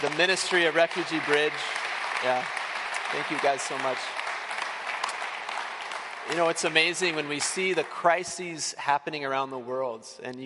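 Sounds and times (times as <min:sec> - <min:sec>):
speech: 0:00.0 - 0:04.2, 0:06.3 - 0:10.4
audience applause: 0:00.0 - 0:08.6.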